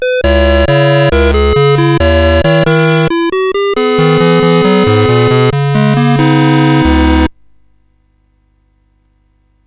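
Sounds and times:
chiptune music on CSG 8580R5 chip: 0.0 - 7.3.

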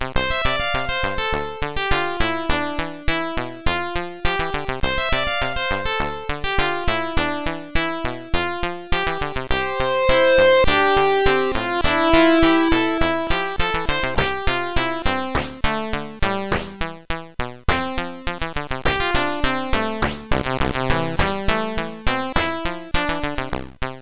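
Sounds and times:
synthesizer from CSG8580R5 chip: 0.2 - 16.8, 17.7 - 23.7.

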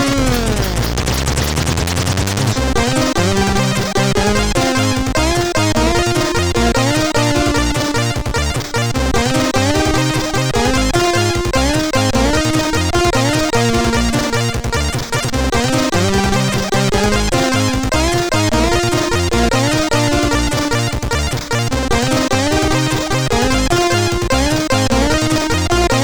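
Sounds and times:
music on a MOS CSG8580R5 sound chip: 0.0 - 26.0.

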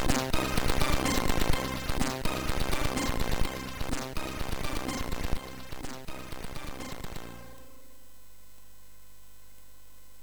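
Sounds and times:
SID MOS6581R3 chip loader music: 0.0 - 8.0.

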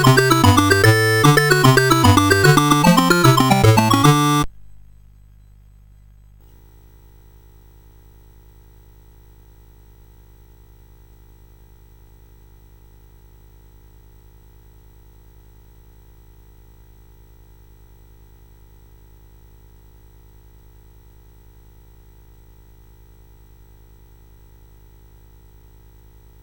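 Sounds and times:
Commodore CSG8580R5 chiptune jig: 0.0 - 4.5.

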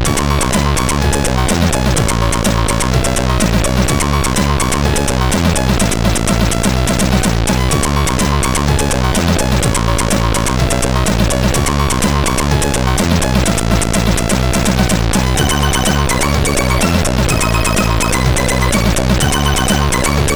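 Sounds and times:
SID CSG8580R5 chip menu music: 0.1 - 20.3.

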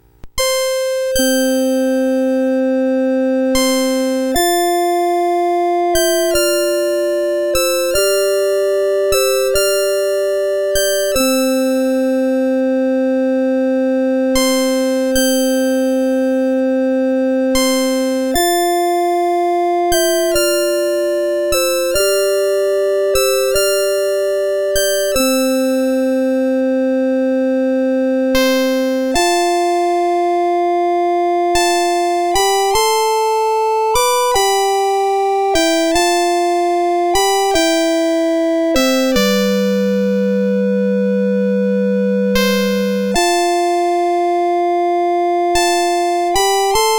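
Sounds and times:
lullaby on CSG8580R5 SID chip: 0.3 - 46.9.

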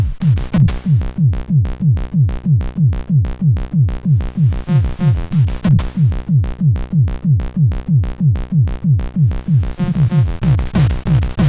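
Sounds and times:
SID CSG8580 chiptune synthesizer: 0.2 - 11.4.

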